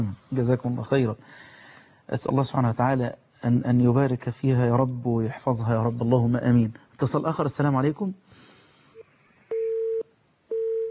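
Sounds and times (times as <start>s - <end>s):
speech: 0.0s - 8.2s
phone line busy tone beeps after a dropped call: 9.5s - 10.8s.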